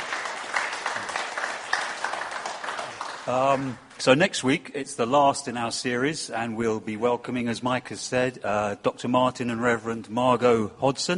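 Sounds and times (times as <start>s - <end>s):
audience applause: 0.0s - 3.9s
speech: 3.3s - 11.1s.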